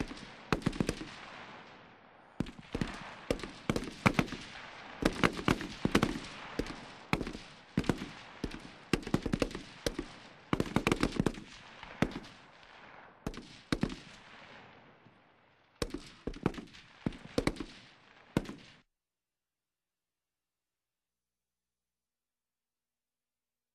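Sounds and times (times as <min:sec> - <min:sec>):
M16 automatic rifle gunfire: 0:00.0 - 0:01.8, 0:02.4 - 0:14.6, 0:15.8 - 0:18.8.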